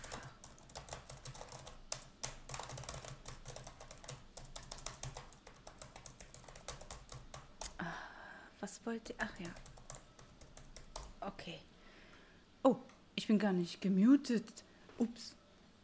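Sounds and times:
rapid typing on a computer keyboard: 0.0 - 7.8, 9.0 - 11.2
speech: 8.8 - 9.7, 11.2 - 11.7, 12.6 - 15.4.

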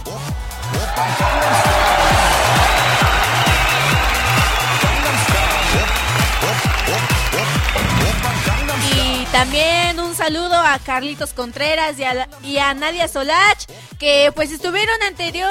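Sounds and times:
audience applause: 0.6 - 9.6
crowd voices: 0.9 - 10.0
speech: 1.0 - 1.5, 9.4 - 15.4.

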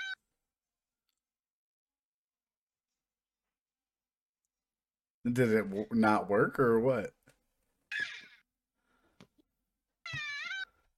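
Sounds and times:
squeezed rubber chicken toy squeal: 0.0 - 0.2, 7.9 - 8.4, 10.0 - 10.8
speech: 5.2 - 7.2.

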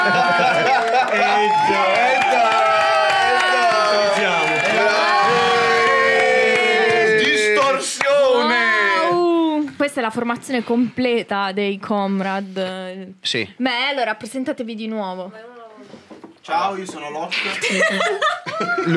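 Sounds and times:
laughter: 0.0 - 1.6, 17.3 - 18.9
applause sound effect of crowd cheering and shouting: 0.0 - 9.6
speech: 10.1 - 18.9.

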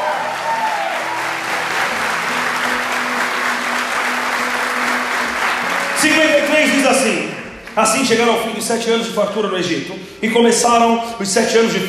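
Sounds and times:
audience applause: 0.0 - 7.9
speech: 6.0 - 11.8.

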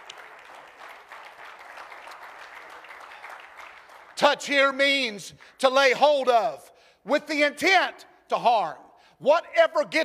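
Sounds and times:
audience clapping hands: 0.0 - 5.7
speech: 4.2 - 10.0.

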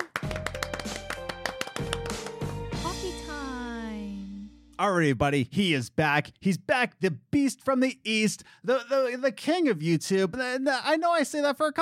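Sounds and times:
clapping: 0.0 - 2.7
speech: 4.8 - 11.8.

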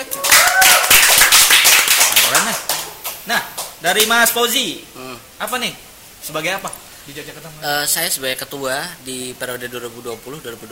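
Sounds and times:
hand clapping applause: 0.0 - 4.1
speech: 3.3 - 10.6.

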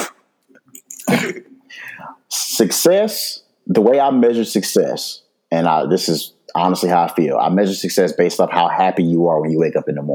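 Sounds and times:
throat clearing: 0.0 - 2.0
mouth noises: 0.0 - 2.2
speech: 1.2 - 10.1.

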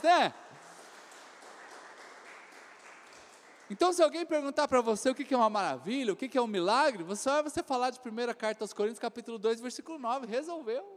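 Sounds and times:
speech: 0.0 - 0.4, 3.7 - 10.9
audience applauding: 0.0 - 4.2.

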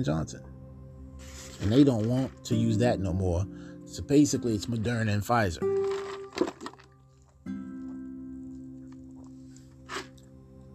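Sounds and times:
speech: 0.0 - 0.5, 1.6 - 5.7
ice rattling in a glass while sipping: 5.7 - 7.0.

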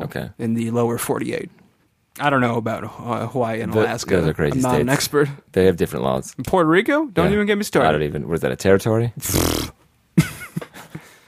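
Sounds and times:
speech: 0.1 - 1.6, 2.2 - 10.3
voice imitating a horse: 3.7 - 5.1.

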